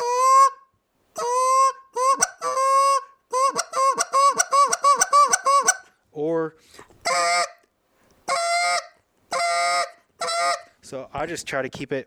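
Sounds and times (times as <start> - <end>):
geese honking as they land on water: 0.0 - 0.6, 1.2 - 5.9, 7.0 - 7.6, 8.3 - 10.8
speech: 11.1 - 12.0.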